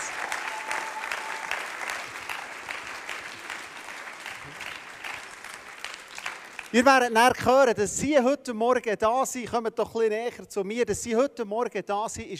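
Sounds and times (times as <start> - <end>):
audience applause: 0.0 - 7.1
speech: 6.7 - 12.3.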